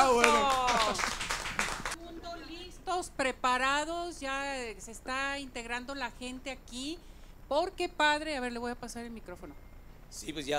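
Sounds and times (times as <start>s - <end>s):
audience applause: 0.0s - 2.0s
speech: 3.0s - 10.5s.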